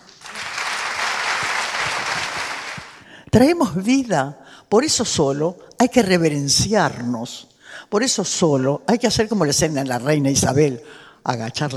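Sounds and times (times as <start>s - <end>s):
audience applause: 0.0s - 3.1s
speech: 3.3s - 11.7s.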